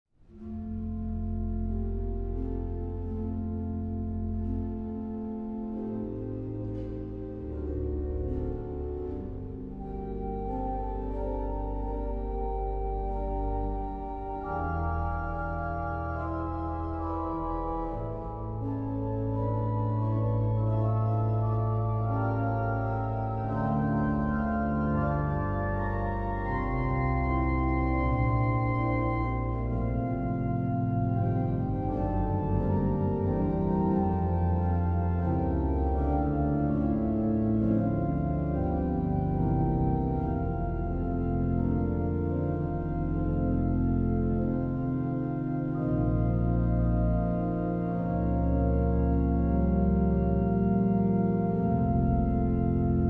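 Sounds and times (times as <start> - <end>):
two organs: 0.3 - 53.0.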